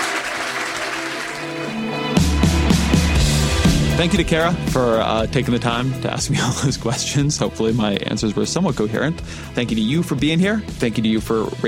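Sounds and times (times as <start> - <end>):
audience applause: 0.0 - 2.3
low rhythmic beat: 2.2 - 11.3
speech: 4.0 - 11.6.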